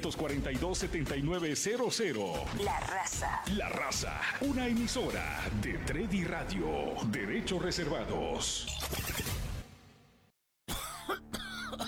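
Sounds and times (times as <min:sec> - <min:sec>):
speech: 0:00.0 - 0:09.3
harsh coughing: 0:10.7 - 0:11.8.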